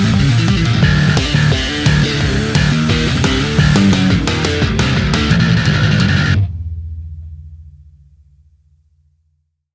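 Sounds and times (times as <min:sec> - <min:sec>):
metal guitar whammy bar: 0:00.0 - 0:07.8.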